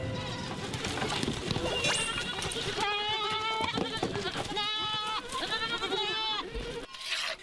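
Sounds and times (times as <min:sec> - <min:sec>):
goats bleating: 0:00.1 - 0:00.7, 0:01.8 - 0:07.4.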